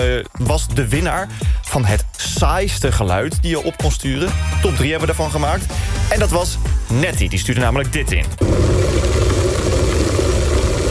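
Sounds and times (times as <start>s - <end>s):
speech: 0.0s - 9.1s
electric kettle boiling water: 8.4s - 10.9s.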